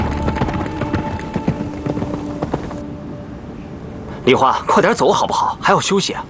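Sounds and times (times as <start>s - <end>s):
tired horse hooves clip-clopping: 0.0s - 2.8s
speech: 4.2s - 6.2s.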